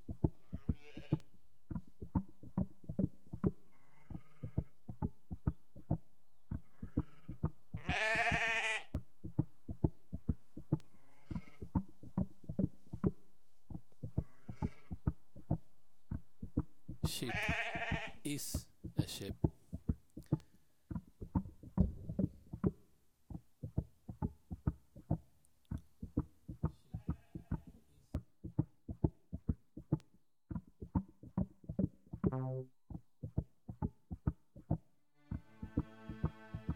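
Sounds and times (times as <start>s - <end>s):
steady rapid thumping beat: 0.0s - 36.7s
sheep bleating: 0.4s - 1.2s, 3.7s - 4.7s, 6.7s - 9.0s, 11.0s - 11.6s, 14.2s - 15.0s, 17.1s - 18.5s.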